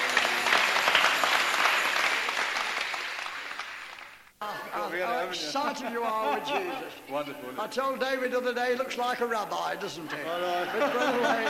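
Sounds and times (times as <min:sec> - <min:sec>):
audience applause: 0:00.0 - 0:04.4
laughter: 0:04.4 - 0:07.4, 0:09.9 - 0:11.4
speech: 0:05.3 - 0:11.4.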